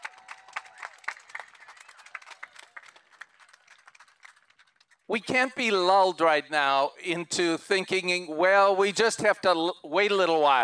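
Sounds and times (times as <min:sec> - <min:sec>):
audience applause: 0:00.0 - 0:05.0
speech: 0:05.1 - 0:10.6.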